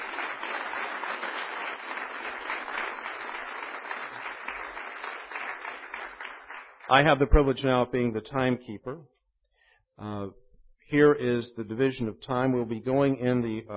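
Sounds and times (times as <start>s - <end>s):
audience applause: 0.0s - 7.1s
speech: 6.9s - 9.2s, 10.0s - 13.7s.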